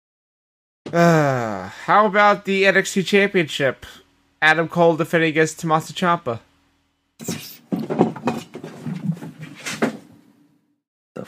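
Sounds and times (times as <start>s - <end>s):
speech: 0.9s - 6.5s, 7.2s - 7.5s
cat making a commotion with thumps, knocks and rattling clatters: 7.2s - 10.1s.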